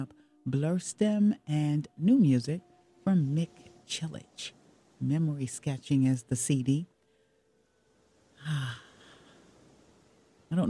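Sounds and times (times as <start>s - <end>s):
speech: 0.0s - 6.9s, 8.4s - 8.8s
deep breath: 8.4s - 10.1s.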